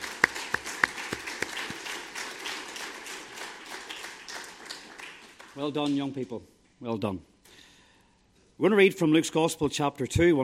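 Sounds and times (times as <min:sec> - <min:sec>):
audience applause: 0:00.0 - 0:06.0
speech: 0:05.6 - 0:07.3, 0:08.6 - 0:10.4.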